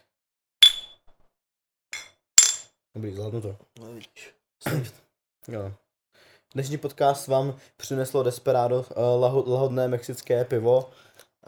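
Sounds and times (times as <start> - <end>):
glasses clinking in a toast: 0.6 - 1.0, 2.0 - 2.7
speech: 3.0 - 11.4.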